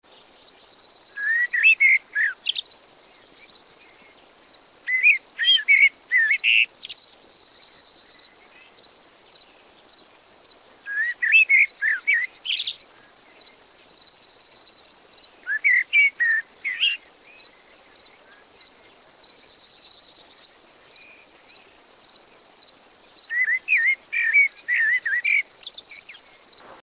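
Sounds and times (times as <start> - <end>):
insect buzz: 0.0 - 26.8
common blackbird singing: 0.8 - 2.7, 4.9 - 8.3, 10.9 - 13.6, 15.4 - 17.6, 23.3 - 26.8.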